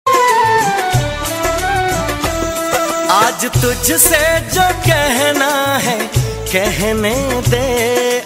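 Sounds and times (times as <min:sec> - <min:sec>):
Hindi love song ringtone: 0:00.1 - 0:08.1.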